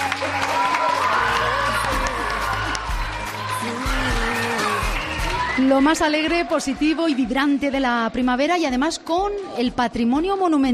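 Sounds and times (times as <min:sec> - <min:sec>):
loud audience applause: 0:00.0 - 0:08.0
speech: 0:05.6 - 0:10.7.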